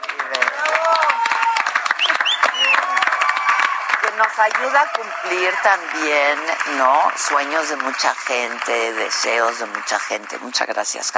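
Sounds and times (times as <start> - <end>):
applause: 0.0 - 11.1
speech: 4.4 - 11.1.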